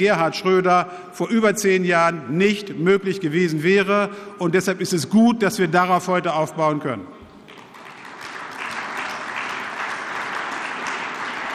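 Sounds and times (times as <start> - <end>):
speech: 0.0 - 7.2
audience applause: 7.3 - 11.5.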